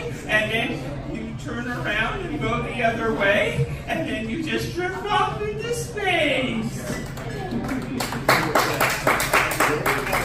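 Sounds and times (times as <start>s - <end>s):
murmur of voices: 0.0s - 10.2s
speech: 0.5s - 8.5s
audience applause: 7.5s - 10.2s.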